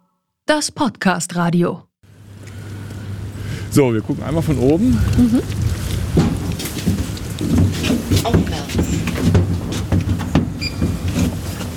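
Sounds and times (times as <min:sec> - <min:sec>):
speech: 0:00.5 - 0:01.9, 0:03.7 - 0:06.3, 0:07.8 - 0:09.5
low mechanical hum: 0:02.1 - 0:11.7
elevator door sliding shut: 0:09.8 - 0:11.7.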